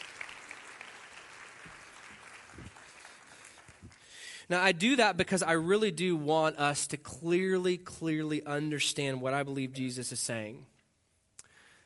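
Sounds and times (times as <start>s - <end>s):
audience round of applause: 0.0s - 4.2s
speech: 4.5s - 10.7s.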